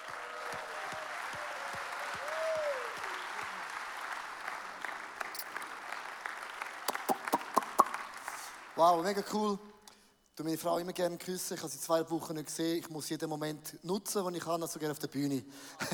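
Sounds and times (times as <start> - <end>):
audience applause: 0.0 - 8.9
speech: 8.8 - 9.7, 10.4 - 15.9.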